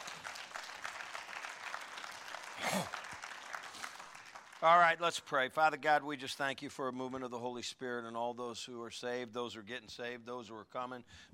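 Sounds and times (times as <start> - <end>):
applause: 0.0 - 5.4
speech: 4.6 - 11.3.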